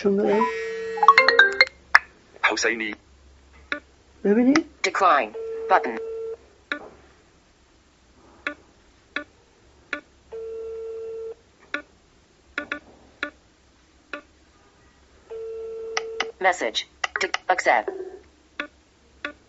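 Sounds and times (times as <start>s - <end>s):
speech: 0.0s - 0.7s, 2.6s - 3.1s, 4.2s - 6.1s, 16.4s - 18.1s
mobile phone ringing tones: 0.3s - 1.8s, 5.3s - 6.4s, 10.4s - 11.4s, 15.3s - 16.3s.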